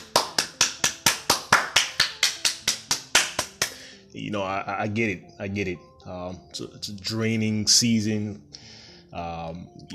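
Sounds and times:
hands clapping in applause: 0.0s - 3.8s
speech: 4.2s - 9.9s.

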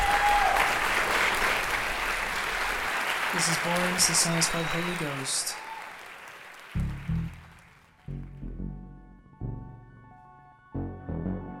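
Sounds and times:
audience applause: 0.0s - 8.2s
speech: 3.4s - 5.6s.

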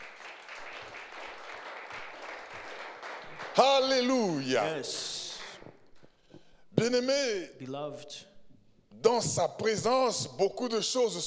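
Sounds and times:
church congregation clapping during a service: 0.0s - 7.0s
speech: 3.6s - 5.2s, 6.8s - 8.3s, 9.0s - 11.2s.

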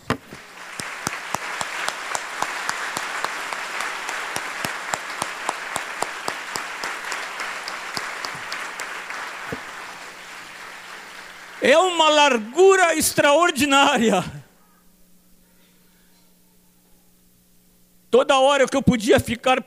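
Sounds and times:
crowd applauding: 0.2s - 13.0s
speech: 11.6s - 14.4s, 18.4s - 19.6s.

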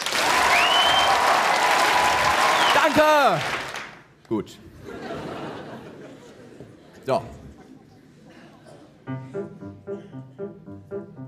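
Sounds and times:
audience applause: 0.0s - 4.0s
speech: 2.9s - 3.6s, 4.3s - 4.7s, 7.1s - 7.4s
laughter: 4.8s - 9.0s.

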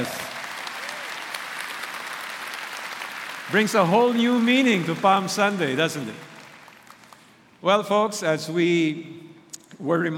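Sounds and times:
speech: 0.0s - 0.3s, 3.5s - 6.3s, 7.6s - 9.2s, 9.8s - 10.1s
audience applause: 0.0s - 7.3s.

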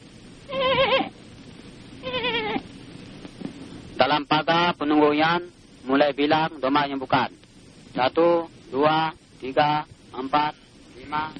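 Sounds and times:
lamb bleating: 0.5s - 1.2s, 2.0s - 2.6s
speech: 4.0s - 11.3s.

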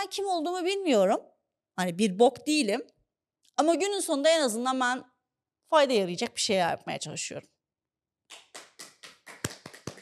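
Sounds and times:
speech: 0.0s - 3.0s, 3.6s - 5.1s, 5.7s - 7.5s
one person clapping: 8.3s - 10.0s.

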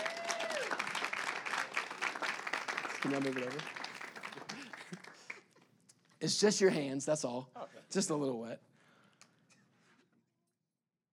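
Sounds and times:
crowd applauding: 0.0s - 5.5s
speech: 3.0s - 3.8s, 6.2s - 8.7s.

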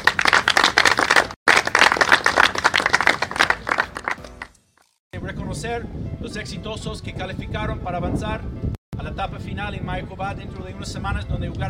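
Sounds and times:
crowd applauding: 0.0s - 4.6s
speech: 5.6s - 11.6s.

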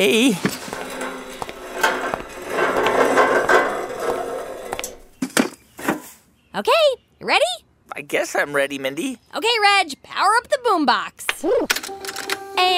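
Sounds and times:
speech: 0.0s - 0.6s, 6.6s - 12.0s, 12.6s - 12.7s
lawn chair being unfolded and set down: 0.0s - 6.1s.

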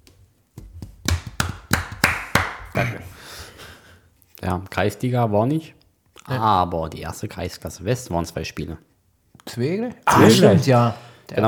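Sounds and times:
audience clapping: 1.0s - 2.9s
speech: 4.4s - 11.4s.

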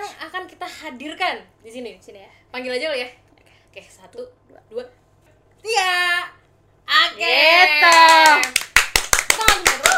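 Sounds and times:
speech: 0.8s - 5.0s, 5.6s - 8.6s
hand clapping: 7.8s - 9.9s.

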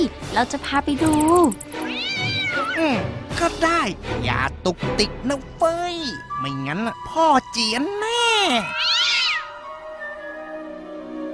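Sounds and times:
speech: 0.1s - 1.8s, 2.8s - 9.2s
cat meowing: 1.8s - 2.8s, 8.6s - 10.6s.

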